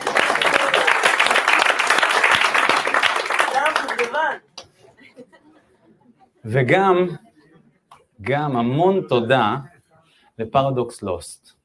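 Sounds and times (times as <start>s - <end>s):
audience applause: 0.0s - 4.4s
laughter: 4.7s - 6.4s
speech: 6.4s - 7.2s, 8.2s - 9.7s, 10.4s - 11.6s.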